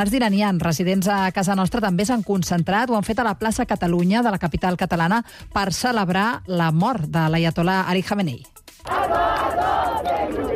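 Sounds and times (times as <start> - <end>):
speech: 0.0 - 10.5
festive street march crowd chanting: 8.9 - 10.5.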